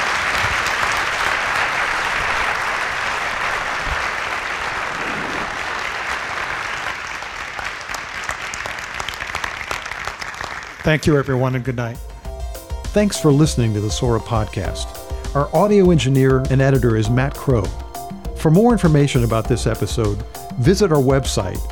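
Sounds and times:
crowd applauding panelists: 0.0s - 11.7s
speech: 10.8s - 12.1s, 13.0s - 17.8s, 18.4s - 21.7s.

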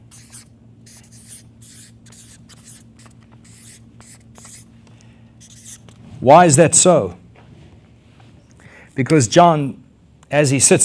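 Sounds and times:
handwriting scratching across paper: 0.0s - 4.7s, 5.4s - 5.9s
low constant hum: 0.0s - 10.8s
speech: 6.2s - 7.2s, 9.0s - 10.8s.

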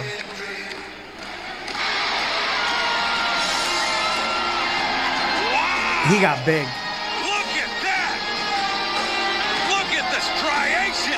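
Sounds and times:
large wrestling crowd cheering: 0.0s - 11.1s
scattered whoops and yells from the crowd: 1.7s - 9.0s
speech: 6.1s - 6.8s.

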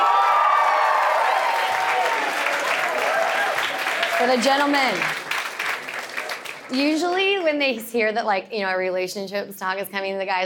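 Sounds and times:
audience applause at a talk on relationships: 0.0s - 8.0s
speech: 4.2s - 5.2s, 6.7s - 10.4s.

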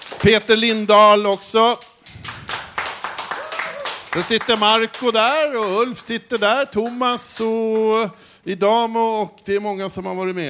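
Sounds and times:
applause for live musician: 0.0s - 8.0s
speech: 0.2s - 1.9s, 4.1s - 10.4s.

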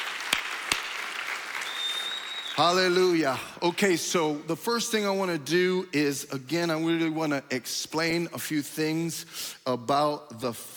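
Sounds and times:
audience clapping: 0.0s - 3.2s
speech: 2.6s - 10.7s.

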